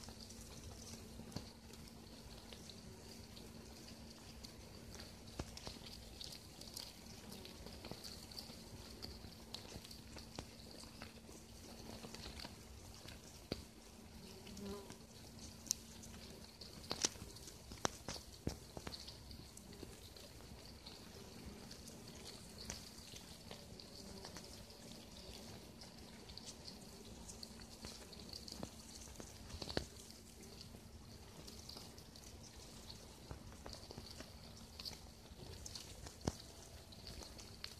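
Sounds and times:
ants in an anthill in a forest: 0.0 - 37.7.

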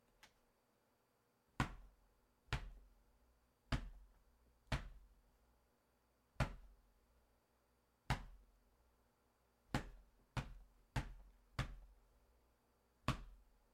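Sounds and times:
percussive hits on a bed: 1.6 - 3.0, 3.6 - 5.2, 6.3 - 6.8, 8.0 - 8.6, 9.7 - 12.0, 13.0 - 13.5.

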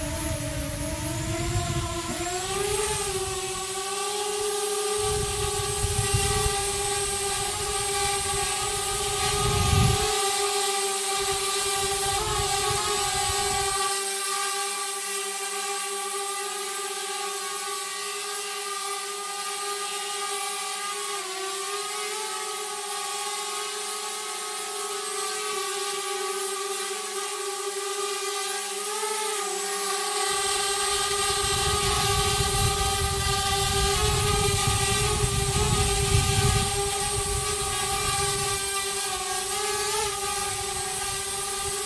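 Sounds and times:
drone taking off flying and landing: 0.0 - 41.8.

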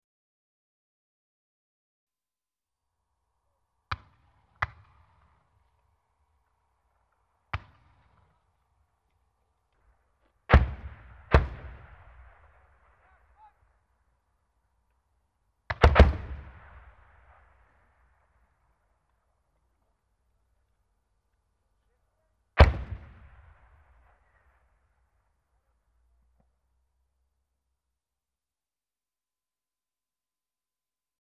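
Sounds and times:
explosions: 10.5 - 13.4, 15.7 - 18.6, 22.6 - 24.8.

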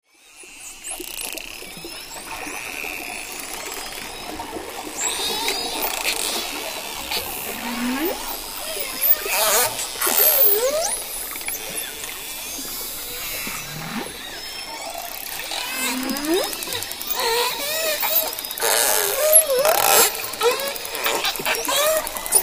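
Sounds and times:
dolphins clicking and whistling: 0.3 - 22.4
water splashes: 1.2 - 22.4.

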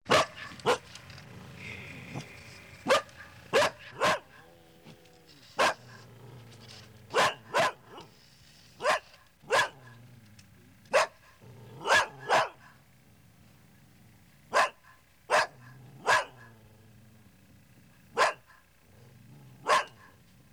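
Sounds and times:
large dog barking: 0.1 - 0.9, 2.1 - 4.7, 5.6 - 6.1, 7.1 - 8.1, 8.8 - 10.0, 10.9 - 12.8, 14.5 - 16.7, 18.0 - 20.3.

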